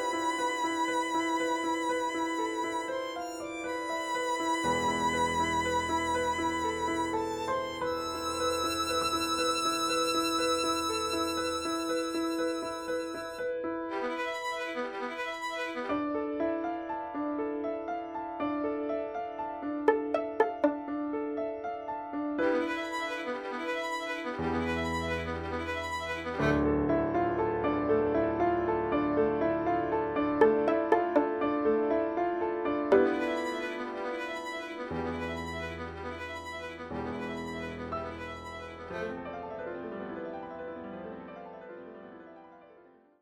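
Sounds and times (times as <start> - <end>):
violin: 0.0 - 16.2, 19.6 - 21.5, 22.4 - 27.0, 29.9 - 39.2
piano: 0.0 - 43.2.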